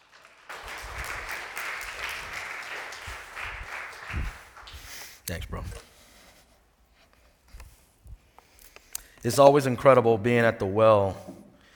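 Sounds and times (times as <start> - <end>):
audience applause: 0.0 - 5.0
speech: 5.3 - 5.9, 9.2 - 11.4.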